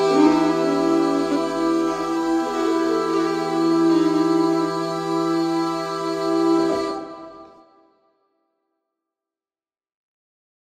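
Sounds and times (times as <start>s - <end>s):
Hardanger fiddle: 0.0s - 7.7s
Swedish bagpipe: 0.0s - 7.9s.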